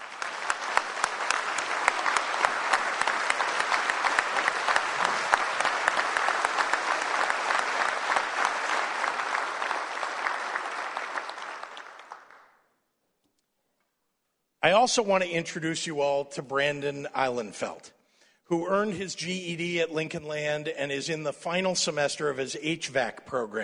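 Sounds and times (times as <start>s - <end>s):
audience applause: 0.0s - 12.6s
speech: 14.6s - 23.6s.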